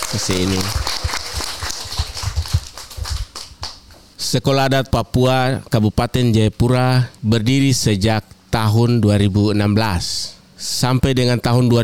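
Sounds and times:
applause: 0.0s - 3.8s
speech: 0.1s - 0.9s, 4.3s - 11.8s.

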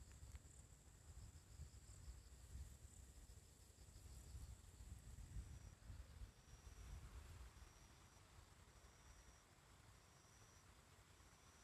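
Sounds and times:
steady insect drone: 0.0s - 11.6s
bell cricket song: 5.3s - 11.6s.

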